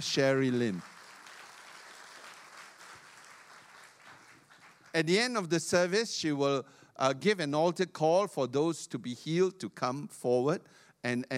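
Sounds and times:
speech: 0.0 - 0.9, 5.0 - 11.3
church service audience applause welcoming a speaker: 0.0 - 5.0.

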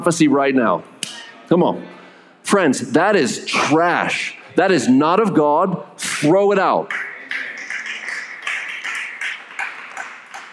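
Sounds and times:
speech: 0.0 - 0.9, 1.5 - 7.0
audience clapping: 6.9 - 10.5.

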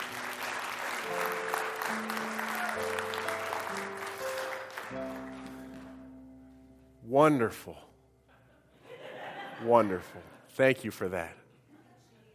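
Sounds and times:
large audience applause: 0.0 - 6.0
speech: 7.2 - 7.9, 9.6 - 11.4
laughter: 8.3 - 10.6.

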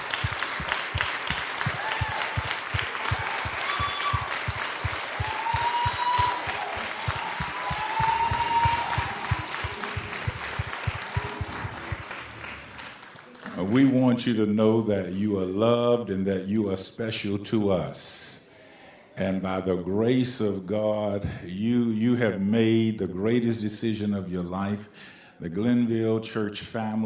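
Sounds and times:
audience hand clap for newly baptized members: 0.0 - 13.8
speech: 13.7 - 18.2, 19.2 - 27.0.

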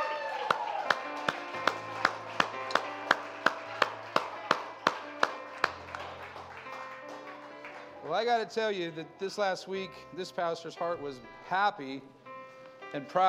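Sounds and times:
audience clapping hands: 0.0 - 8.2
speech: 8.1 - 12.2, 12.9 - 13.2.

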